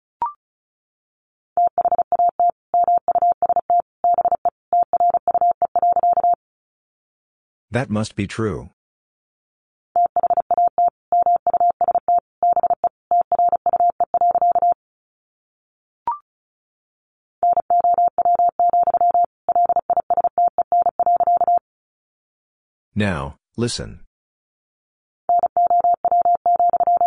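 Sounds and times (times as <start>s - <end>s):
fast Morse code at 35 words per minute: 1.6s - 6.4s, 10.0s - 14.8s, 17.4s - 21.6s, 25.3s - 27.0s
speech: 7.7s - 8.8s, 23.0s - 24.1s.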